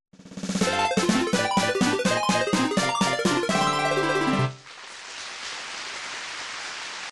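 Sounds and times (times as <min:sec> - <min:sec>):
congratulations fanfare: 0:00.6 - 0:04.8.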